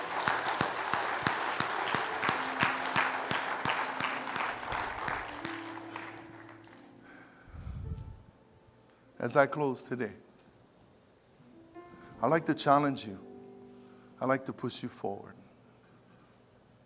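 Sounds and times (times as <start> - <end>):
audience clapping: 0.0 - 6.9
low tone: 7.5 - 8.3
speech: 9.2 - 10.3, 12.2 - 13.3, 14.2 - 15.4.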